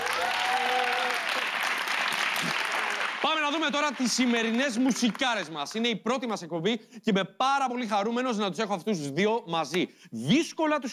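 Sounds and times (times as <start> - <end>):
audience applause celebrating a host's 50th birthday: 0.0 - 5.6
speech: 3.5 - 10.9.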